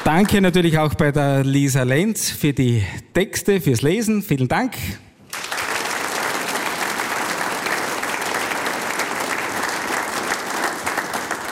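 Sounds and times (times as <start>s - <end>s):
speech: 0.1s - 5.1s
audience applause: 5.3s - 11.5s.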